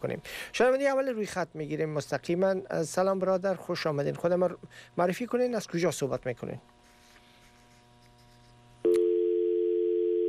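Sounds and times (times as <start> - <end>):
speech: 0.0 - 6.8
telephone dial tone after dropped call: 8.9 - 10.2.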